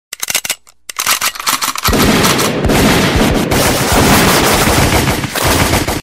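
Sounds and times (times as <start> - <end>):
gunshot: 1.9 - 6.0.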